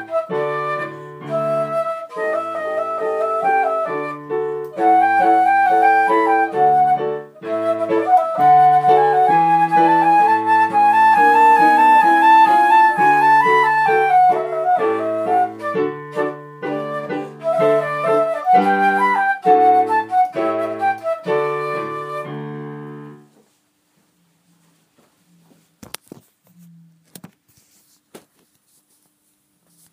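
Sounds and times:
minuet: 0.0s - 23.4s.

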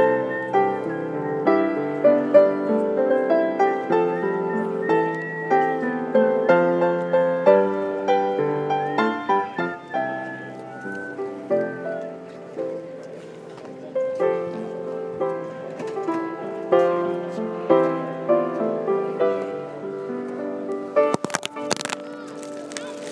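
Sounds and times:
piano: 0.0s - 23.1s
phone dropping: 21.1s - 22.1s.

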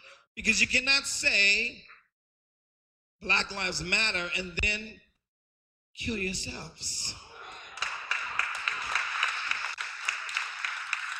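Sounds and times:
speech: 0.4s - 2.0s, 3.2s - 5.0s, 6.0s - 7.3s
small crowd applause: 7.5s - 11.1s
person clapping loudly: 7.8s - 11.1s.

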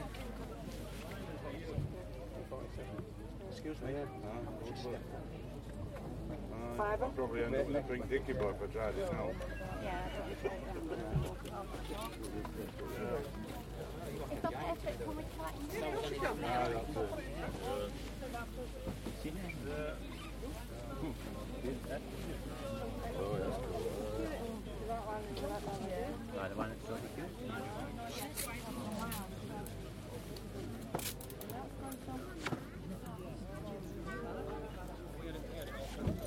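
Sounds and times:
Skirlington car boot market soundscape: 0.0s - 36.2s.

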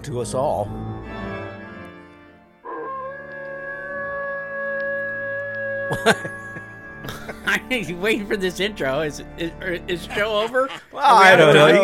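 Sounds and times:
speech: 0.0s - 1.2s, 5.9s - 6.7s, 7.5s - 11.8s
dog howling: 2.7s - 7.1s
laughter: 5.8s - 8.5s, 9.8s - 11.8s.

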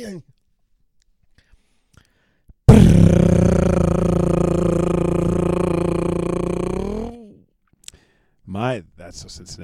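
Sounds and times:
speech: 0.0s - 0.3s, 8.7s - 9.6s
voice imitating a drum roll: 2.7s - 7.3s.

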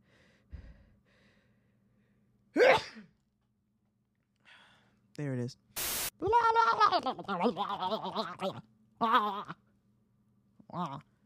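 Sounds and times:
sneeze: 2.6s - 3.1s
speech: 5.2s - 9.6s, 10.7s - 11.1s.

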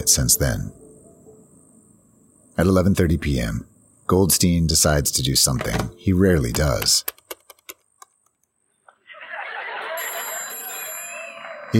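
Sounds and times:
speech: 0.0s - 0.8s, 2.6s - 7.2s
laughter: 8.9s - 11.7s
telephone ringing: 9.5s - 11.7s.

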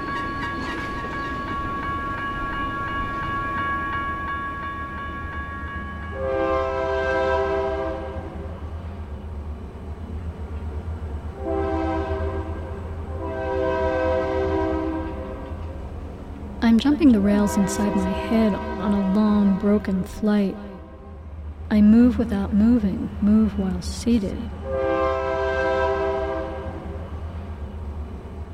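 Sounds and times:
train rumbling past with metallic ringing: 0.0s - 28.5s
train horn blasts: 6.1s - 8.5s, 11.4s - 15.7s, 17.2s - 21.2s, 24.6s - 26.9s
speech: 16.8s - 20.7s, 21.7s - 24.8s.

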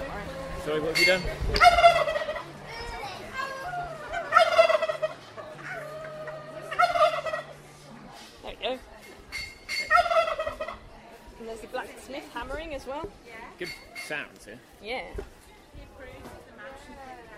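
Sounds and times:
speech: 0.7s - 2.1s, 13.6s - 15.2s
turkey gobbling: 1.0s - 2.6s, 3.5s - 7.6s, 9.3s - 10.8s.

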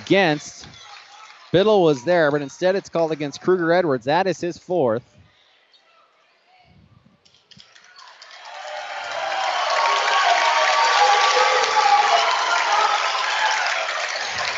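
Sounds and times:
applause from the bench and fans: 0.0s - 4.0s, 7.6s - 14.5s
speech: 0.1s - 0.7s, 1.5s - 5.1s.

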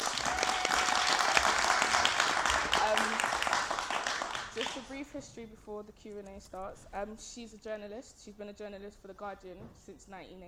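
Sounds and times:
audience applause: 0.0s - 4.9s
speech: 5.0s - 10.4s.

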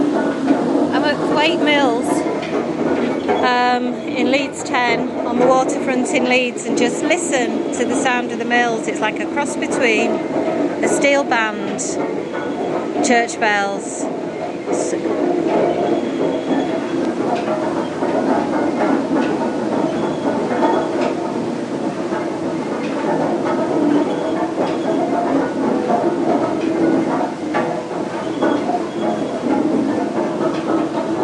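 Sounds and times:
water wheel at Thwaites Mill: 0.0s - 31.2s.

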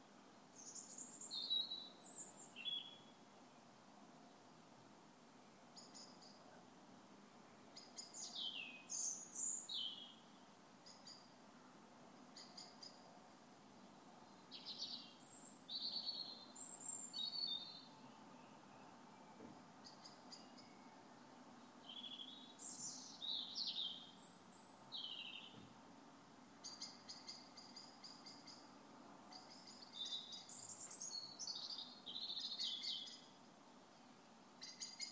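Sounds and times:
equinox birdsong outside a window: 0.6s - 3.7s, 5.8s - 6.6s, 7.5s - 11.4s, 12.3s - 13.1s, 13.8s - 25.8s, 26.6s - 33.4s, 34.6s - 35.1s.

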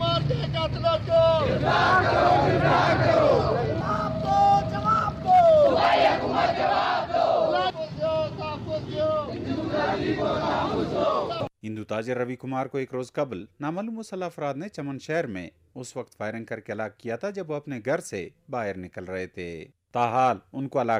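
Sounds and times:
speech: 0.3s - 4.0s, 9.8s - 20.9s
protesters chanting slogans at a sit-in rally outside a deputy commissioner's office: 1.1s - 11.5s.

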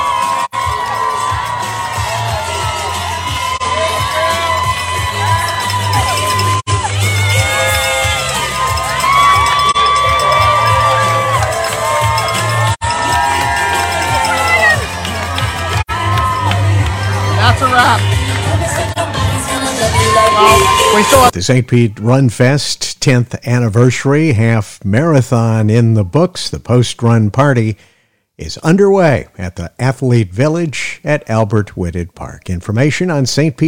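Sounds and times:
crowd cheering at the St. Pete Run Fest half marathon finish line: 0.0s - 21.4s
speech: 21.3s - 33.6s.

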